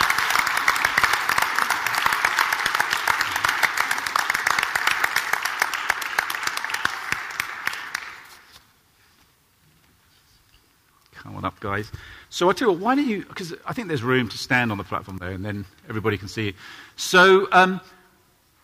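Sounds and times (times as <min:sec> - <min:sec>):
audience applause: 0:00.0 - 0:08.5
speech: 0:11.6 - 0:18.0.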